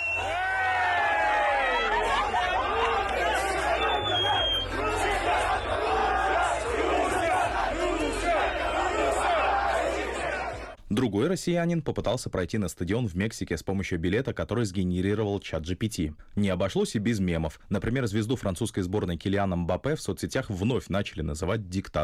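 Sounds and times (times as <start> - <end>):
fan zone crowd chanting: 0.0 - 10.8
speech: 11.0 - 22.0.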